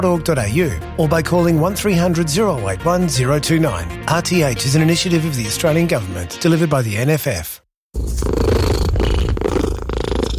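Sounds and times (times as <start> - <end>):
speech: 0.0 - 8.4
cat purring: 8.0 - 10.3.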